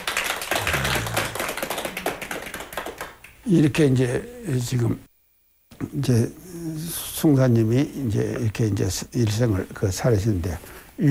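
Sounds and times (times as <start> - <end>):
audience clapping: 0.0 - 3.9
speech: 3.4 - 5.1, 5.8 - 11.0.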